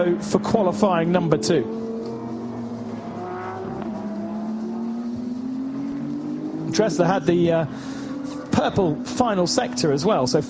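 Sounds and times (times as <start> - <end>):
speech: 0.0 - 2.2, 6.8 - 8.0, 8.6 - 10.4
race car engines droning on track: 0.0 - 10.4.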